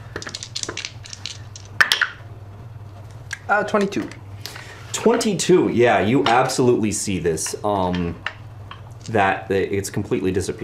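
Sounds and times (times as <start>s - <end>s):
dice rolling: 0.0s - 2.2s
speech: 3.5s - 4.2s, 5.0s - 8.3s, 9.1s - 10.6s.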